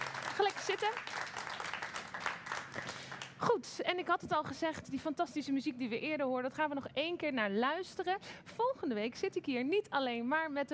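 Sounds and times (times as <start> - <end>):
audience applause: 0.0 - 3.4
speech: 0.7 - 1.2, 3.5 - 10.7.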